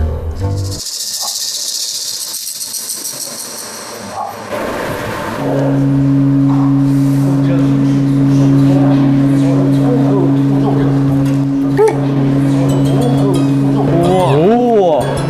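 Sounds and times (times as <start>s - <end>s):
hand-rubbed gong resonant hum: 3.8s - 15.2s.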